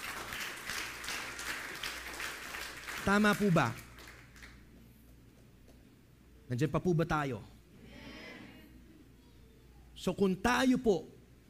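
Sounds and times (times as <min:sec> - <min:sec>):
church congregation applause during a Sunday sermon: 0:00.0 - 0:04.6
speech: 0:03.0 - 0:03.8, 0:06.5 - 0:07.5, 0:10.0 - 0:11.2.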